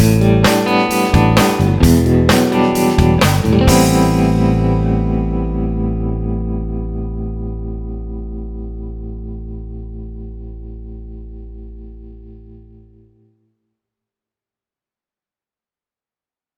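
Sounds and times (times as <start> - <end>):
band playing with guitar: 0.0 - 6.3
clean vintage guitar through tube mic preamp: 0.0 - 13.2.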